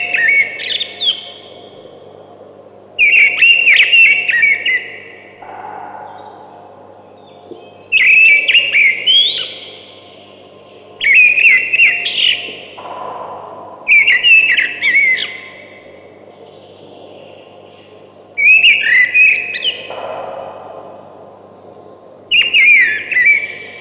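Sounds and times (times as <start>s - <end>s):
thrush singing loud whistled phrases: 3.0s - 10.3s, 11.0s - 17.4s, 18.4s - 20.8s, 22.3s - 23.8s.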